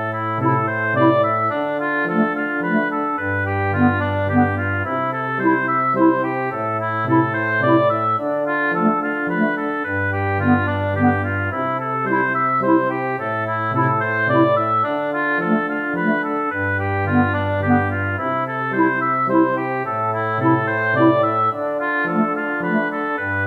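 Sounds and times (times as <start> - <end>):
fortissimo wind instruments playing without flute: 0.0 - 23.4.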